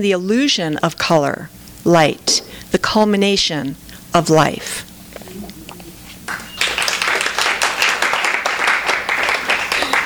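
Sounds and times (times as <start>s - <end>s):
speech: 0.0s - 4.9s
audience applause after a poem: 6.3s - 10.0s.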